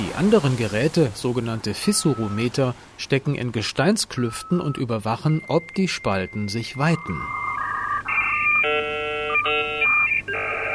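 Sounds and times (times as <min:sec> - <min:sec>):
speech: 0:00.1 - 0:07.4
telephone modem dial-up connection tones: 0:01.8 - 0:02.6, 0:04.2 - 0:10.7.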